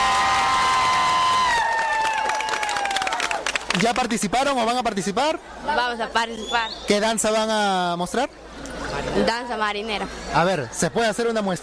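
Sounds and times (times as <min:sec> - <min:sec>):
people cheering for a school: 0:00.0 - 0:04.0
people applauding for a school: 0:00.0 - 0:04.3
speech: 0:03.8 - 0:08.4, 0:09.0 - 0:11.6.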